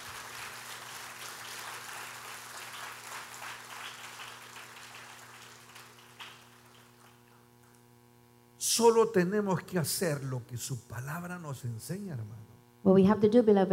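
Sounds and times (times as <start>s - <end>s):
congregation applauding at a church service: 0.0s - 7.8s
speech: 8.6s - 13.7s.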